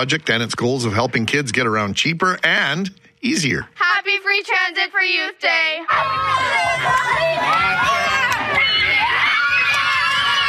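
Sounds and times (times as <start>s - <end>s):
speech: 0.0s - 8.6s
Selkirk students cheering to welcome Manitoba's Premier: 5.9s - 10.4s.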